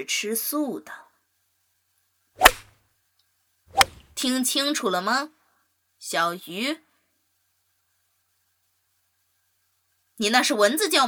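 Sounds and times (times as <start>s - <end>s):
speech: 0.0s - 1.0s, 4.2s - 5.4s, 6.0s - 6.8s, 10.2s - 11.0s
teacher's pointer cane swishing through air: 2.4s - 2.7s, 3.7s - 4.2s.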